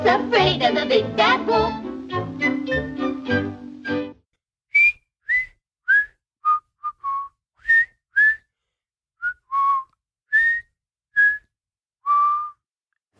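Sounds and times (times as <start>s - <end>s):
speech: 0.1s - 1.9s
whistled cartoon song tune: 2.4s - 4.1s, 4.7s - 8.5s, 9.2s - 11.5s, 12.1s - 12.7s.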